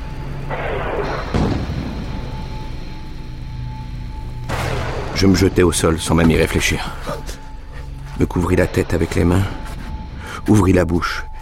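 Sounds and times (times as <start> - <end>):
explosion rumble: 0.5 - 2.8
speech: 5.2 - 7.4, 8.2 - 9.6, 10.4 - 11.3.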